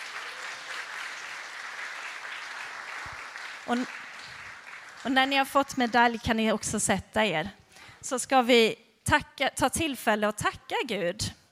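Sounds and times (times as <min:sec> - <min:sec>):
audience applause for children: 0:00.0 - 0:06.1
speech: 0:03.7 - 0:04.0, 0:05.0 - 0:11.4.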